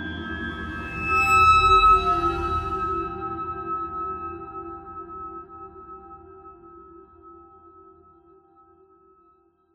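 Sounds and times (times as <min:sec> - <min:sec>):
metal startup ambience: 0:00.2 - 0:05.8.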